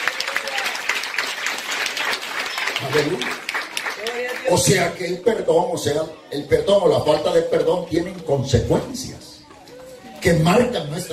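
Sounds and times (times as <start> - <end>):
church congregation clapping during a Spanish-language worship service: 0.0 - 5.0
speech: 2.8 - 3.4, 4.4 - 9.2, 10.2 - 11.1.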